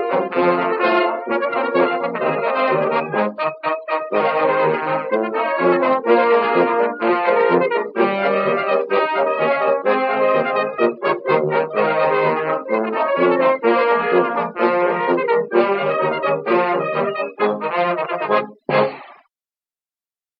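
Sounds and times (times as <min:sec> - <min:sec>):
ragtime music: 0:00.0 - 0:19.2.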